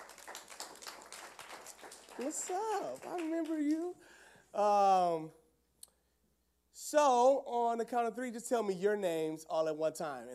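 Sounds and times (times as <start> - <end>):
audience applause: 0.0 - 3.9
speech: 2.2 - 5.4, 6.9 - 10.3.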